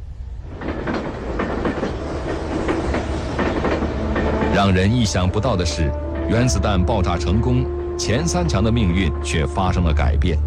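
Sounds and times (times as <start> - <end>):
train rumbling on rails: 0.0 - 10.4
wheels clacking on rail joints: 0.5 - 6.6
speech: 4.6 - 10.4.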